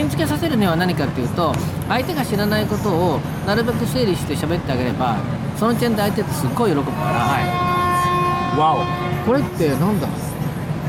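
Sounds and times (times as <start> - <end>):
speech: 0.1 - 7.7, 8.5 - 10.2
ship's horn blast: 6.8 - 10.2.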